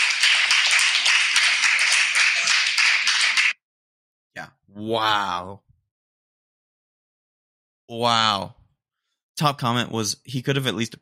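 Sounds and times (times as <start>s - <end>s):
applause: 0.0s - 3.6s
speech: 4.8s - 5.7s, 7.9s - 8.6s, 9.4s - 11.0s.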